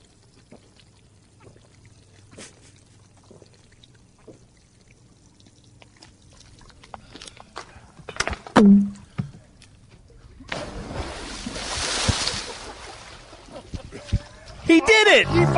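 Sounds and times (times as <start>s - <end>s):
sharp knocks: 8.6s - 9.3s
person splashing into a swimming pool: 10.5s - 13.4s
speech: 15.1s - 15.5s.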